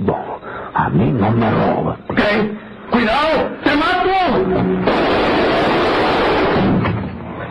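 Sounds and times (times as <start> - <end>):
speech: 0.1 - 6.2
gunshots: 4.4 - 7.2.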